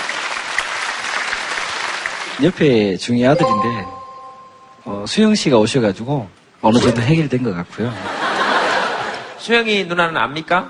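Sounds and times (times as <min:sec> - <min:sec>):
crowd audience applause: 0:00.0 - 0:02.4
speech: 0:02.4 - 0:04.0, 0:04.8 - 0:08.1, 0:09.4 - 0:10.6
laughter: 0:07.9 - 0:09.4.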